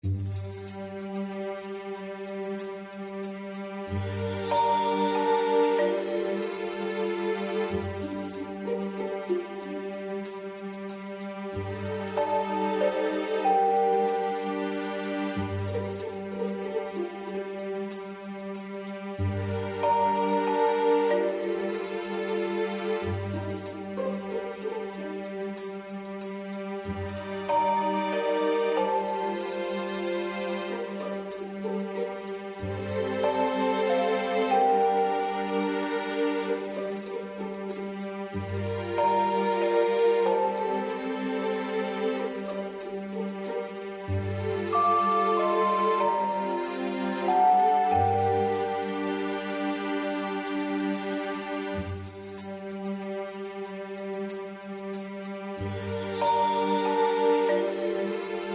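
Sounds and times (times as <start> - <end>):
background music: 0.0 - 58.5.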